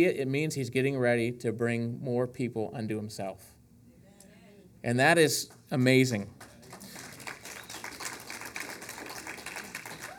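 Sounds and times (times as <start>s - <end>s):
speech: 0.0s - 3.6s, 4.8s - 6.5s
audience clapping: 6.3s - 10.1s.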